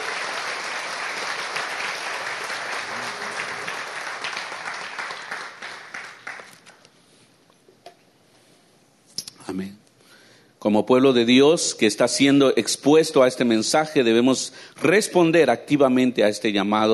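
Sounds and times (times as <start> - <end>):
audience applause: 0.0 - 6.8
speech: 9.6 - 9.8, 10.6 - 16.9.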